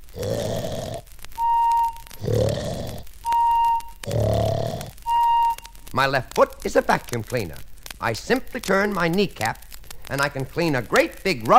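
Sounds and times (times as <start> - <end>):
loud rasping snores while sleeping: 0.0 - 1.0, 2.2 - 3.0, 4.0 - 5.0
steady high-pitched whistle: 1.4 - 2.1, 3.2 - 4.0, 5.0 - 5.7
speech: 6.0 - 11.5.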